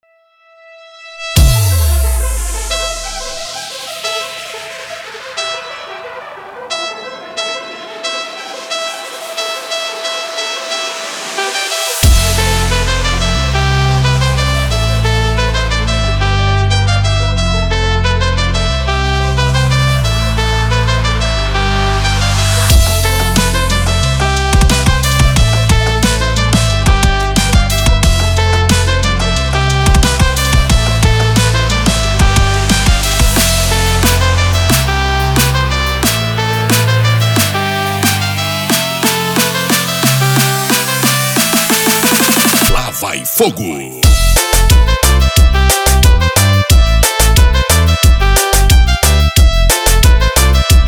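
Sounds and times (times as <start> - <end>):
rock trumpet intro: 0.0 - 43.2, 44.0 - 50.8.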